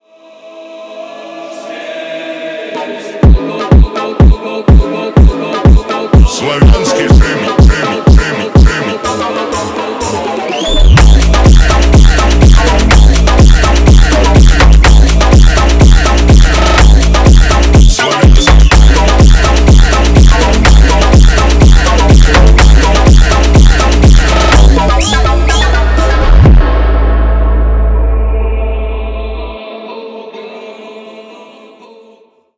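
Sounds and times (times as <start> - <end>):
slavic funk music: 5.0 - 29.6.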